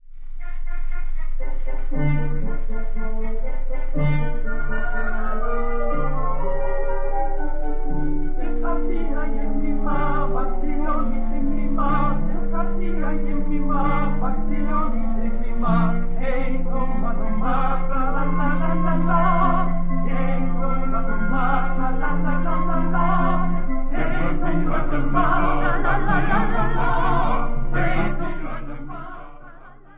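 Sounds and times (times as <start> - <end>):
folk music: 0.4 - 29.5.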